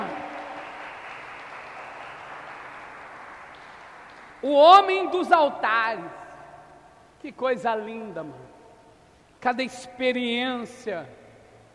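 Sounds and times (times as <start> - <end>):
audience applauding: 0.0 - 4.4
speech: 4.4 - 6.2, 7.2 - 8.5, 9.4 - 11.2.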